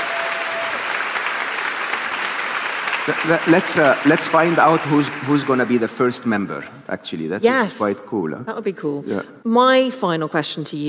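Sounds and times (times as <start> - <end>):
audience applause: 0.0 - 6.2
speech: 3.1 - 10.8.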